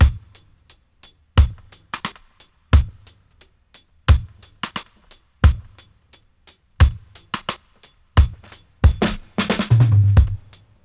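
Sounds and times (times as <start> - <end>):
dry dub drum loop: 0.0 - 10.8.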